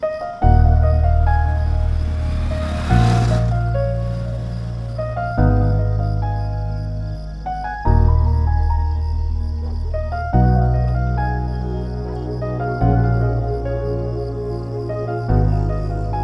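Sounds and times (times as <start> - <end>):
piano: 0.0 - 16.2.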